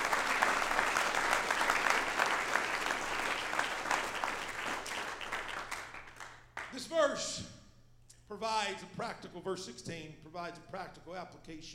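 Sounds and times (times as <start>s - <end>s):
audience clapping hands: 0.0s - 7.0s
speech: 8.8s - 11.7s.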